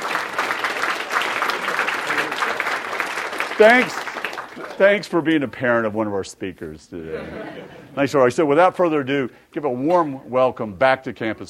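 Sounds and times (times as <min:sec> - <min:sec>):
audience applause: 0:00.0 - 0:05.0
speech: 0:03.6 - 0:04.0, 0:04.6 - 0:11.4
laughter: 0:07.0 - 0:08.2.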